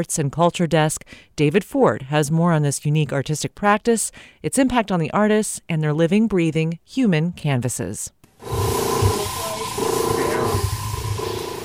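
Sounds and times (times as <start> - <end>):
speech: 0.0 - 9.2
airbrush spraying paint: 8.4 - 11.6.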